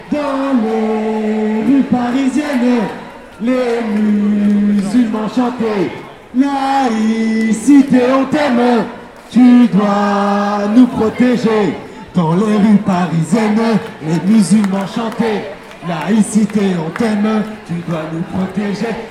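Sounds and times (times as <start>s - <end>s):
crowd chanting: 0.0s - 19.1s.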